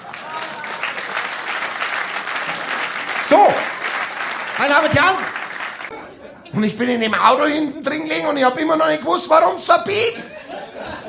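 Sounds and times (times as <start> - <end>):
live audience applause: 0.0 - 5.9
speech: 4.6 - 5.4, 6.6 - 10.3
laughter: 5.8 - 6.8, 10.0 - 11.0.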